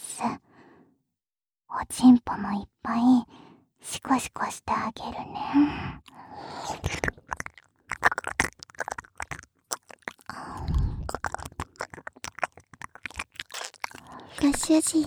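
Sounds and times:
soft breathy stretches: 0.5s - 1.0s, 3.3s - 3.7s, 5.4s - 6.9s, 10.2s - 11.3s
speech: 1.9s - 7.1s, 14.4s - 15.0s
ASMR ear licking wet mouth sounds: 6.1s - 15.0s.

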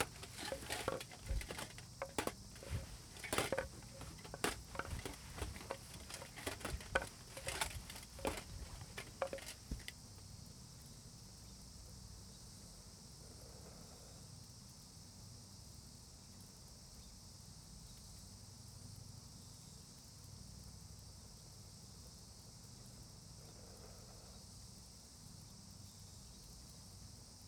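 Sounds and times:
charcoal fire burning: 0.0s - 10.5s.

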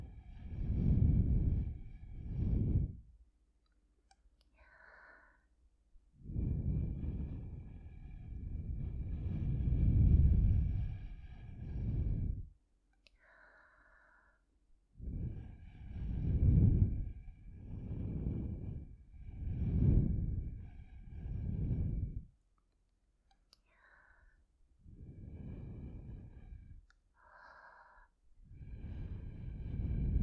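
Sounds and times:
blowing into ears through a straw: 0.3s - 3.0s, 6.3s - 12.5s, 15.0s - 22.3s, 28.5s - 30.2s.

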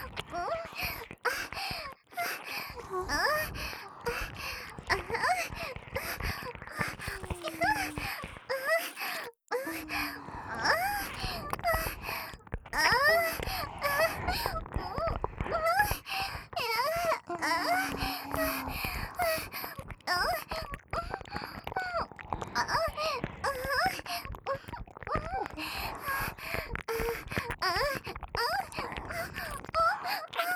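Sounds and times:
licking of both ears: 0.0s - 30.5s
acted moaning: 7.1s - 8.1s, 17.3s - 18.9s.

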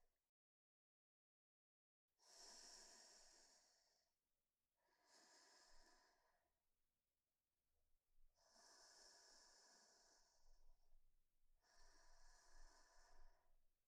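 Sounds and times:
sleeping breath: 2.2s - 4.0s, 4.9s - 6.4s, 8.3s - 10.6s, 11.6s - 13.5s.

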